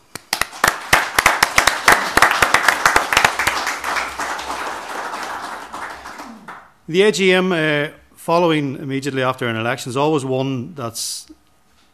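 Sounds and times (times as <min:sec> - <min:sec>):
meeting attendees applauding: 0:00.0 - 0:06.9
speech: 0:06.9 - 0:11.4.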